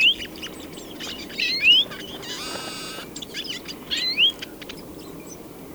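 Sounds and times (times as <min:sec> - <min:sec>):
European greenfinch Chloris chloris trilled chatters: 0:00.1 - 0:04.8.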